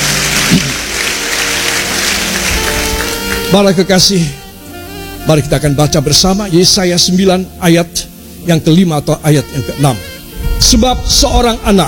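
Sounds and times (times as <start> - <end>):
audience applauding: 0.0 - 3.8
speech: 3.5 - 4.4, 5.2 - 11.8.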